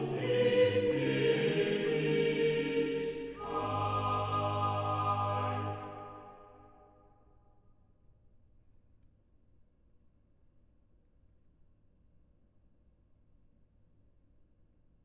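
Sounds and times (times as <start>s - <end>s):
organ chorale: 0.0s - 6.8s.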